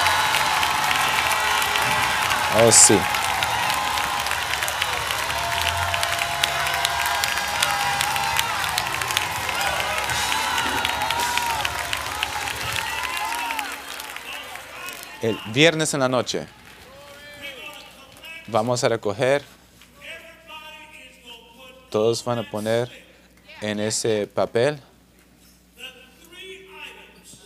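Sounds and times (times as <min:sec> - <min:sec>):
audience shouting: 0:00.0 - 0:17.7
speech: 0:02.5 - 0:03.2, 0:15.3 - 0:16.6, 0:18.5 - 0:19.6, 0:21.9 - 0:23.0, 0:23.6 - 0:24.9.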